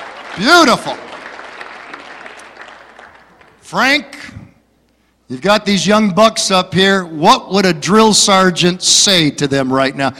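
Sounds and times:
crowd audience applause: 0:00.0 - 0:03.6
speech: 0:00.4 - 0:01.1, 0:03.7 - 0:04.4, 0:05.3 - 0:10.1.

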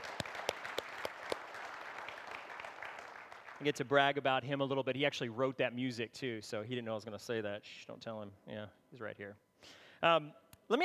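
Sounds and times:
round of applause: 0:00.0 - 0:04.0
speech: 0:03.6 - 0:10.8.

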